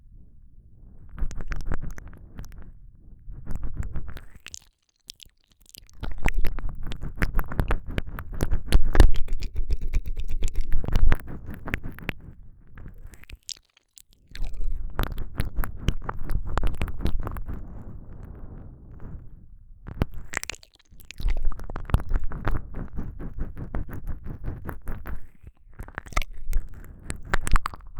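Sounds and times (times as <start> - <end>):
ear licking with tongue pressed hard: 3.5 - 12.2, 12.9 - 18.2, 20.0 - 27.9.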